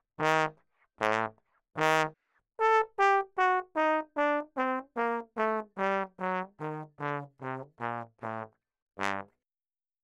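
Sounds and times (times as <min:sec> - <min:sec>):
ragtime trombone: 0:00.2 - 0:09.3.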